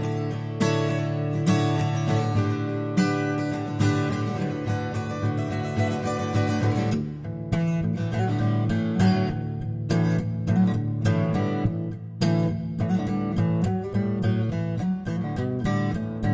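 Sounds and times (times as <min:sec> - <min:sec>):
guitar strumming: 0:00.0 - 0:16.3.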